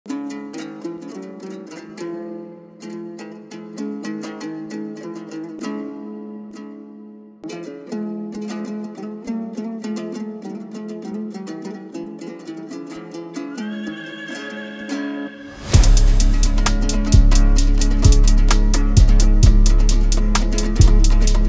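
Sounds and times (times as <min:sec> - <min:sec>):
Kyrgyz komuz remix: 0:13.4 - 0:21.4.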